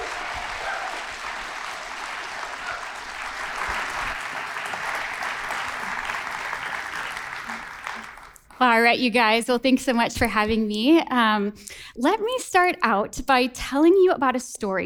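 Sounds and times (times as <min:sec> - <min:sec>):
audience applause welcoming a comedian at a church gathering: 0:00.0 - 0:08.5
speech: 0:08.6 - 0:14.8.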